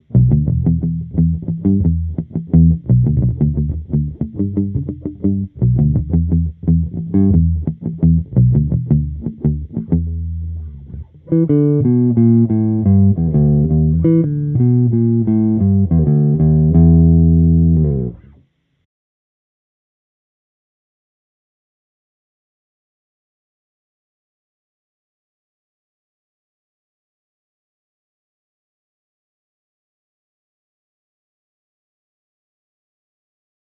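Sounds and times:
300B tube guitar amplifier with high-cut EQ and cabinet: 0.0s - 18.4s.

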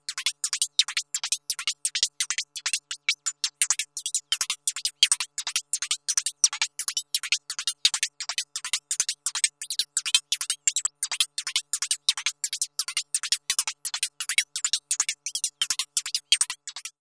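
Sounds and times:
fast water log percussion: 0.0s - 16.9s.

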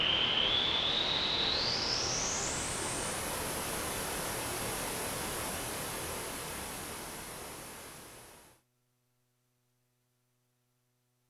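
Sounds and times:
noise generator hiss: 0.0s - 8.6s.

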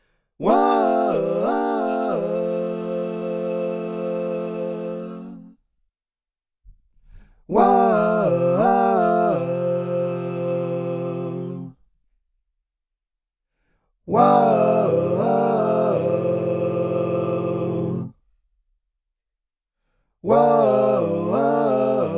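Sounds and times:
Zoom V6 vocal processor harmony effect: 0.4s - 5.6s, 7.5s - 11.8s, 14.1s - 18.2s, 20.2s - 22.1s.

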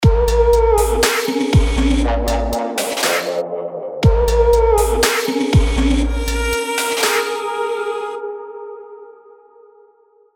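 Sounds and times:
trap beat: 0.0s - 8.2s.

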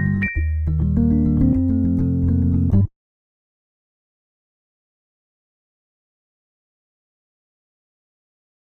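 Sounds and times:
Pianet T electric piano: 0.0s - 2.9s.

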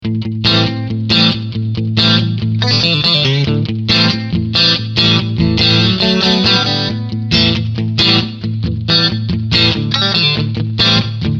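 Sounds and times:
clean single-coil electric guitar front-middle pickup: 0.0s - 11.3s.

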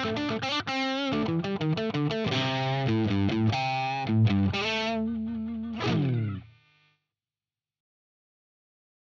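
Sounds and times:
distorted electric guitar: 0.0s - 6.9s.

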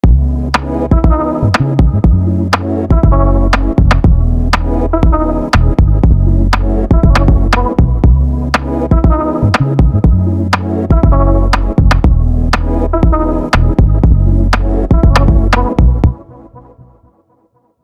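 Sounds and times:
song with only a limiter: 0.0s - 16.9s.

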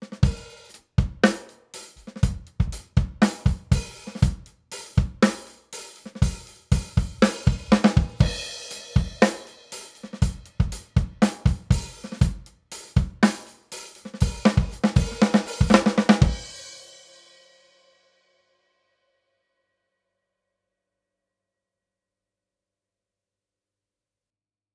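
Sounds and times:
drums through SSL UltraViolet drum bus without EQ: 0.0s - 18.0s.

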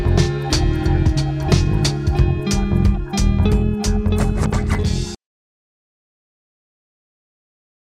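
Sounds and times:
Roland SP-404MK2 drums: 0.0s - 5.2s
bass: 0.0s - 5.2s
guitar: 0.0s - 5.2s.

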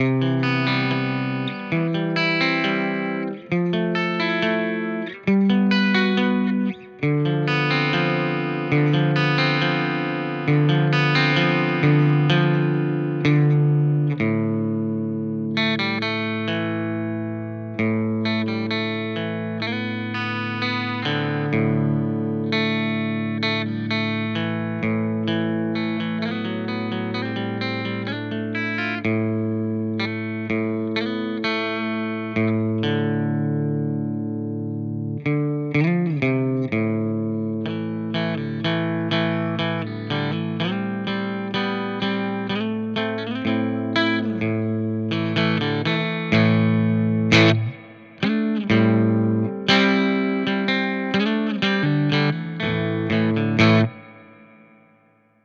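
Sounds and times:
Neural DSP Quad Cortex Sound City amp capture guitar tone: 0.0s - 55.4s.

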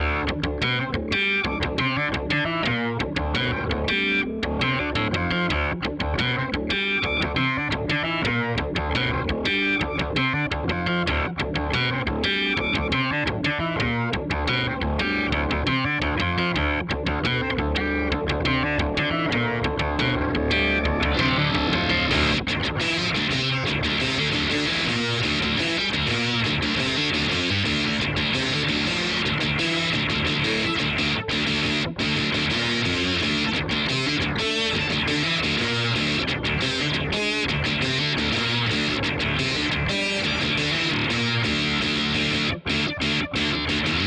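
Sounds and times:
Source Audio Ultrawave SA 250 effects pedal tone: 0.0s - 44.0s.

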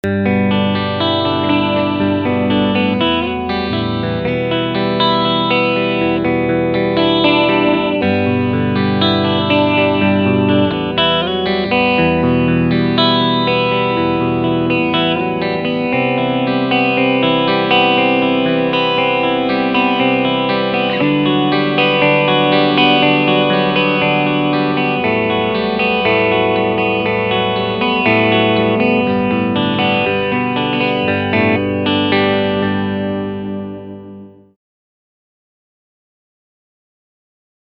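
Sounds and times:
clean guitar picking on both pickups: 0.0s - 34.5s.

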